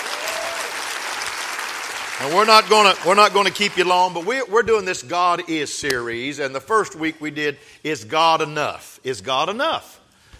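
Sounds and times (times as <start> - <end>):
audience clapping hands: 0.0 - 4.5
speech: 2.2 - 10.0.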